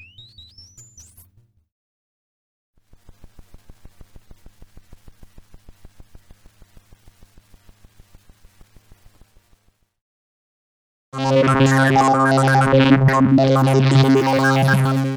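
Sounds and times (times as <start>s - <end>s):
Moog modular synthesizer: 11.2s - 15.1s.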